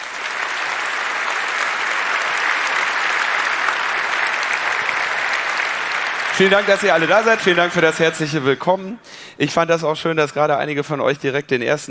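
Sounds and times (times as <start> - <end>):
audience applause: 0.0 - 8.7
speech: 6.4 - 11.8.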